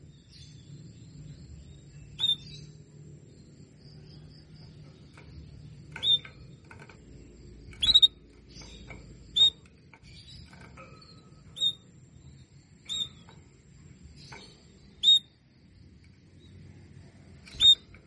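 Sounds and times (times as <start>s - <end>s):
Belgian canary calls: 2.2s - 2.6s, 6.0s - 6.4s, 7.8s - 9.7s, 11.3s - 12.0s, 12.8s - 13.4s, 14.9s - 15.3s, 17.5s - 17.9s.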